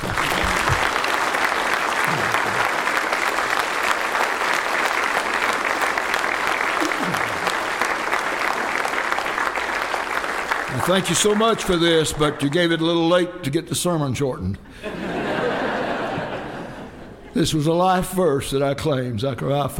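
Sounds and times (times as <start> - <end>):
laughter: 0.0 - 1.1, 1.9 - 3.0, 6.7 - 7.9, 14.8 - 17.4
audience clapping: 0.0 - 13.1
speech: 10.9 - 14.9, 17.4 - 19.7.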